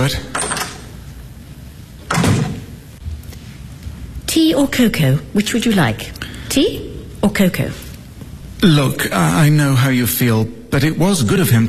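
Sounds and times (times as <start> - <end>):
speech: 0.0 - 0.3, 4.4 - 7.8, 8.6 - 11.6
hum: 0.0 - 11.6
door rattle: 0.3 - 0.9, 2.0 - 2.8
back door swinging shut: 2.0 - 2.7.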